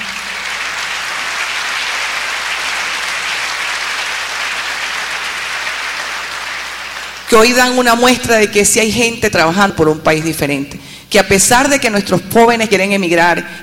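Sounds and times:
audience applause for organizers of an agricultural management symposium: 0.0s - 7.3s
speech: 7.3s - 13.6s.

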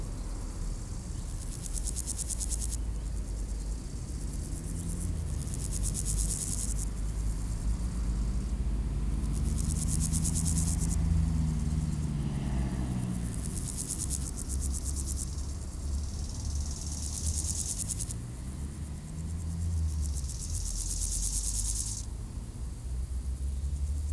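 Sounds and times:
grasshopper stridulating beside a road in Aveize, France: 0.2s - 24.1s.

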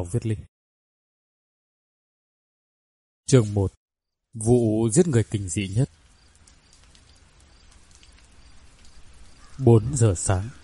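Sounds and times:
speech: 0.0s - 0.5s, 3.3s - 3.8s, 4.4s - 6.0s, 9.6s - 10.6s
heavy rain and wind storm: 4.8s - 10.6s.

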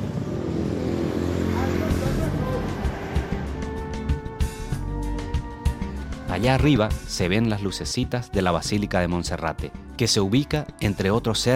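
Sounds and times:
chaotic rush-hour city traffic in Bogotá: 0.0s - 6.3s
speech: 6.4s - 11.5s.

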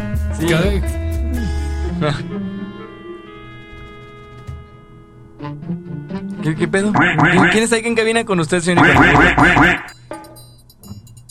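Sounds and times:
speech: 0.4s - 2.6s, 6.5s - 10.0s
duck quacking: 7.0s - 7.7s, 8.8s - 9.9s.

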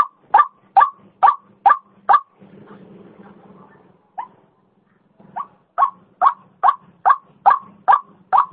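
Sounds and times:
female white-breasted waterhen croaking call used as a lure sound: 0.0s - 2.3s, 5.4s - 8.5s.

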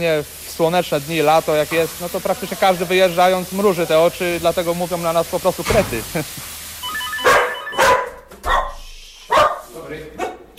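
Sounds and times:
speech: 0.0s - 6.4s
dog barking in greeting: 7.2s - 10.5s.

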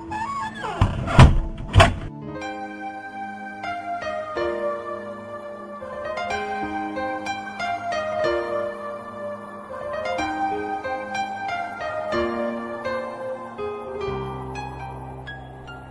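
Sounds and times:
music: 0.0s - 15.8s
front door slamming shut and locked with a key: 0.1s - 2.1s.

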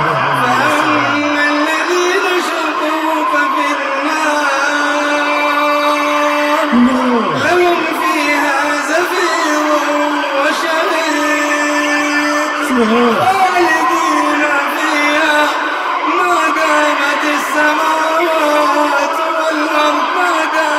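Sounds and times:
many people screaming in pain: 0.0s - 20.7s.

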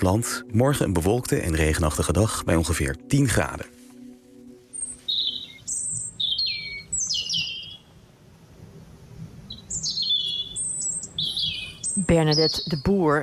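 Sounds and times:
speech: 0.0s - 3.8s, 12.0s - 13.2s
loud bird song in the shrubbery by the Emiklaar pond in Amersfoort: 4.7s - 8.0s, 9.5s - 13.2s.

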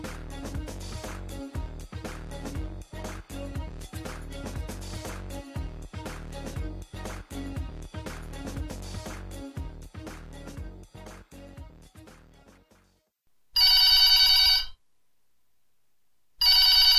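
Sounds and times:
music: 0.0s - 13.2s
loud shrill telephone bell ringing: 13.6s - 14.8s, 16.4s - 16.9s.

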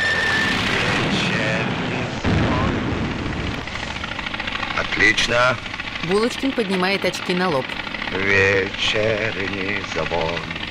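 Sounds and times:
stacks of aerial bombs exploding: 0.1s - 4.1s
speech: 5.0s - 10.6s.

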